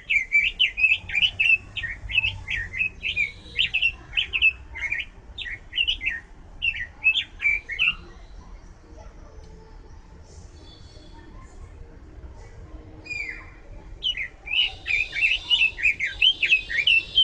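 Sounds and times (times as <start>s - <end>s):
bird chirping: 0.0s - 9.1s, 13.0s - 17.2s.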